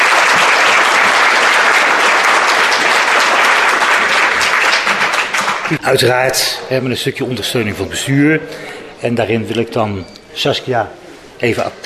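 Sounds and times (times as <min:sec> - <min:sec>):
audience applause: 0:00.0 - 0:05.8
speech: 0:05.7 - 0:11.8.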